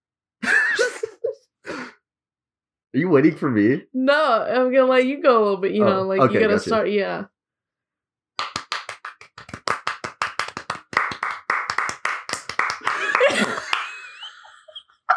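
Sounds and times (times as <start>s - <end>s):
laughter: 0.4s - 1.4s, 12.7s - 15.1s
speech: 2.9s - 7.3s
hand clapping: 8.4s - 14.3s.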